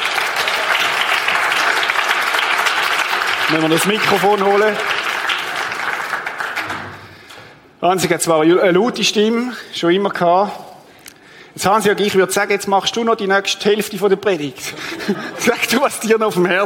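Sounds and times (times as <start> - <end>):
audience applause: 0.0 - 7.1
speech: 3.5 - 5.0, 7.8 - 10.6, 11.6 - 16.6
laughter: 14.6 - 16.6.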